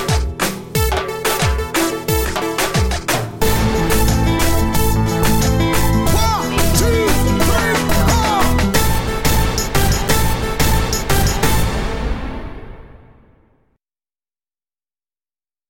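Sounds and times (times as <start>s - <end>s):
reggaeton music: 0.0s - 12.1s.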